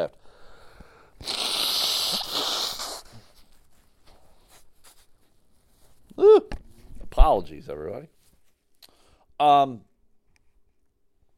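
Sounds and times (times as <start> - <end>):
speech: 0.0 - 0.2, 1.2 - 1.4, 7.3 - 8.2, 9.4 - 9.9
person blowing nose: 1.2 - 3.6.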